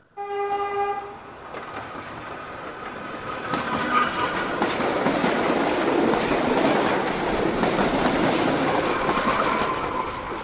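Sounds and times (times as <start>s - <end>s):
fast train horn blast: 0.1s - 1.2s
fast train passing on rails: 0.2s - 10.4s.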